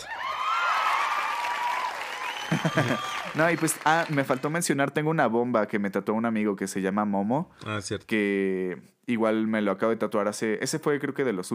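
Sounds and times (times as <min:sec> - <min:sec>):
applause: 0:00.0 - 0:04.8
laughter: 0:02.4 - 0:03.3
speech: 0:02.6 - 0:11.5.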